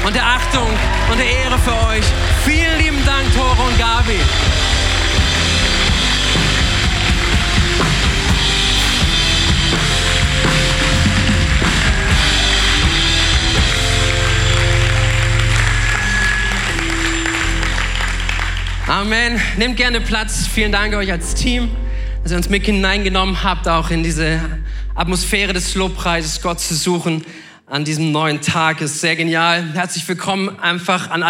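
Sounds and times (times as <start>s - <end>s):
audience applause: 0.0s - 19.6s
speech: 0.1s - 5.5s, 18.9s - 31.2s.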